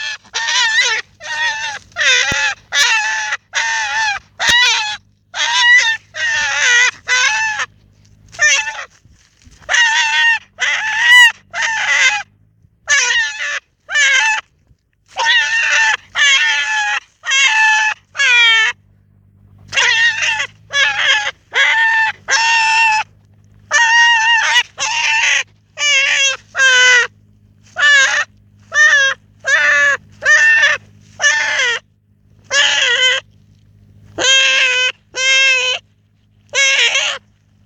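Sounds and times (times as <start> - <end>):
brown hare screaming: 0.0 - 7.7, 9.7 - 12.2, 15.2 - 18.8, 19.7 - 23.1, 23.7 - 27.1, 27.8 - 31.8, 32.5 - 33.2, 34.2 - 35.8, 36.5 - 37.2
low hum: 0.0 - 12.9, 16.8 - 37.6.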